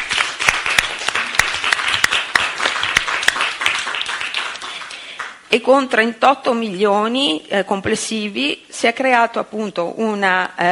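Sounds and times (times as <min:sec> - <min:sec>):
audience applause: 0:00.0 - 0:05.4
speech: 0:05.5 - 0:10.6.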